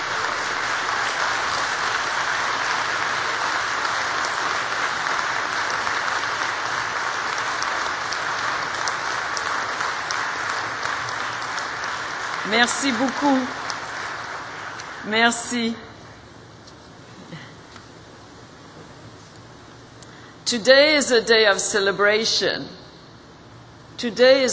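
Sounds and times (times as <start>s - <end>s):
big round of applause from graduates: 0.0s - 15.1s
speech: 12.5s - 13.6s, 15.0s - 15.9s, 20.5s - 22.8s, 24.0s - 24.5s.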